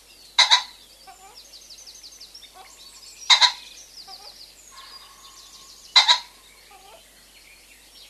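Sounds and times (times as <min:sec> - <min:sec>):
common pheasant crowing: 0:00.4 - 0:01.4, 0:02.4 - 0:07.0.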